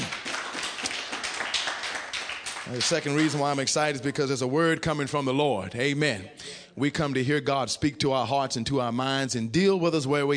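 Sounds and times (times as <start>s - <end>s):
audience hand clapping: 0.0s - 3.8s
speech: 2.7s - 10.3s.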